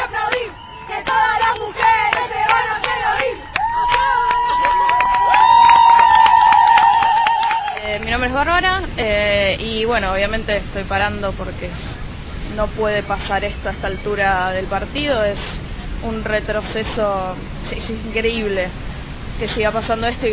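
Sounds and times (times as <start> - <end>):
women protesters shouting: 0.2 - 7.8
speech: 9.0 - 11.9, 12.5 - 18.8, 19.4 - 20.3.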